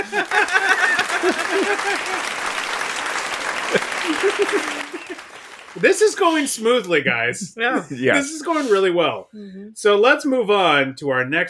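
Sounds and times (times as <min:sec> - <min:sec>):
speech: 0:00.0 - 0:02.6, 0:03.7 - 0:11.4
audience applause sound effect: 0:00.0 - 0:06.9
voices speaking and chuckling: 0:05.8 - 0:09.7.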